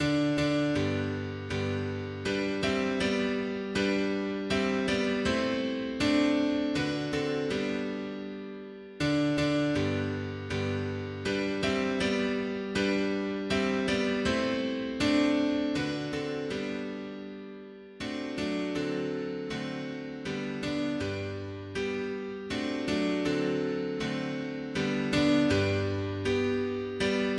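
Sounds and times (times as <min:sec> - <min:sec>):
mono piano: 0:00.0 - 0:27.3.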